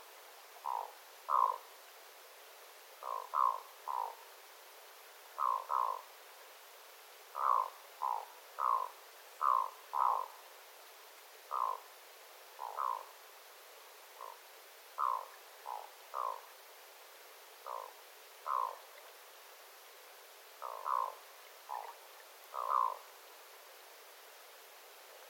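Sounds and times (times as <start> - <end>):
faint hiss: 0.0 - 25.2
black-throated loon croaking: 0.6 - 1.6, 3.0 - 4.2, 5.4 - 6.0, 7.4 - 10.4, 11.5 - 11.8, 12.6 - 13.1, 14.2 - 14.4, 15.0 - 16.5, 17.6 - 18.8, 20.6 - 23.0.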